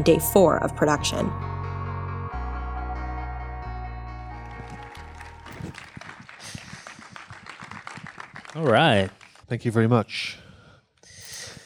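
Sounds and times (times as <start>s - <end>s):
speech: 0.0s - 1.5s, 8.6s - 10.4s
audience applause: 4.3s - 9.5s.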